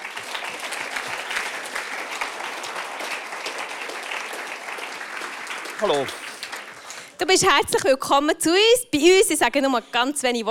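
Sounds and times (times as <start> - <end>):
audience applause: 0.0 - 7.2
speech: 5.8 - 6.2, 7.2 - 10.5.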